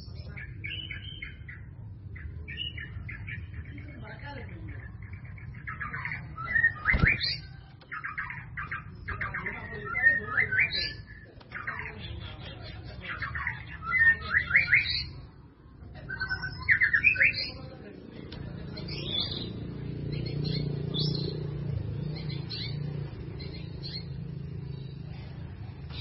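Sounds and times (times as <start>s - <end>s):
White-rumped Shama song: 0.0s - 25.9s.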